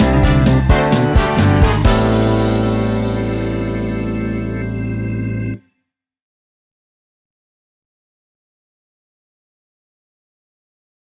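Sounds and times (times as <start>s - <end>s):
funk stinger: 0.0s - 5.6s.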